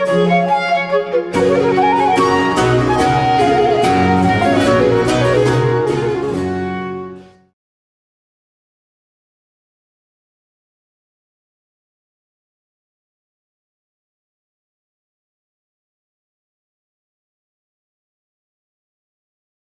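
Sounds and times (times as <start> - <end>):
violin: 0.0 - 7.4
basso continuo: 0.0 - 7.5
flute: 0.0 - 7.6.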